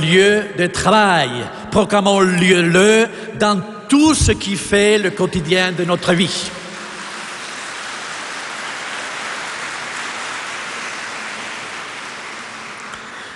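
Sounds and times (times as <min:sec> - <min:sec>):
speech: 0:00.0 - 0:06.6
audience applause: 0:06.8 - 0:13.3.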